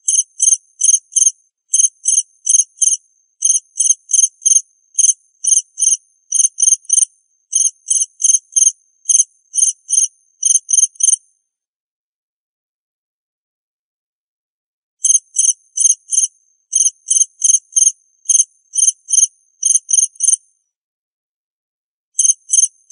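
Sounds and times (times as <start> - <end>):
cricket chirping: 0.0 - 11.2, 15.0 - 20.4, 22.2 - 22.9.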